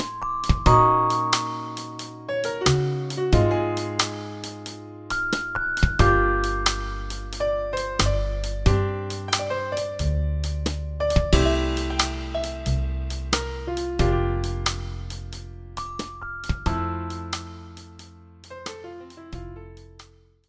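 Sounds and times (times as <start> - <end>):
drums: 0.0 - 20.2.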